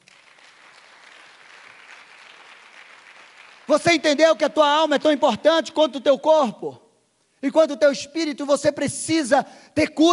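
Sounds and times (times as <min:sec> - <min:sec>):
audience applause: 0:00.0 - 0:03.8
speech: 0:03.7 - 0:06.8, 0:07.4 - 0:10.1.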